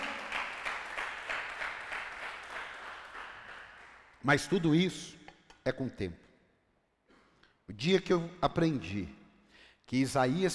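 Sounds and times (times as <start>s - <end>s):
audience applauding: 0.0s - 4.1s
speech: 4.2s - 6.2s, 7.7s - 9.2s, 9.9s - 10.5s.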